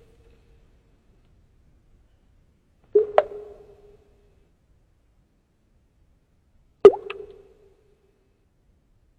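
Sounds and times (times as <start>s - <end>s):
water drops plopping: 3.0s - 3.8s, 6.8s - 7.5s.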